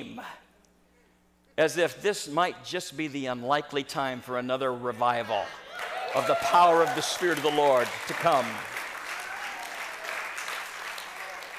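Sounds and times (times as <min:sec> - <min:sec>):
speech: 0:01.6 - 0:08.7
audience clapping: 0:05.7 - 0:11.5.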